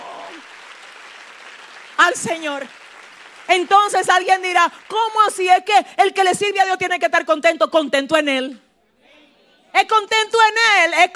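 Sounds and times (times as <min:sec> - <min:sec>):
audience applause: 0:00.0 - 0:05.2
speech: 0:02.0 - 0:02.8, 0:03.5 - 0:08.6, 0:09.8 - 0:11.1.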